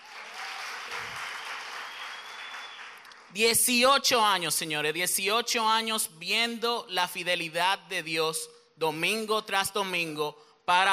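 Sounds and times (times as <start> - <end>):
audience applause: 0.0 - 3.2
speech: 3.3 - 10.9.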